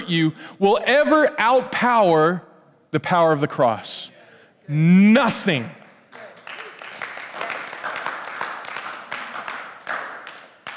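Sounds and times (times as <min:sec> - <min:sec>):
speech: 0:00.1 - 0:04.1, 0:04.7 - 0:05.8
audience applause: 0:06.1 - 0:10.7.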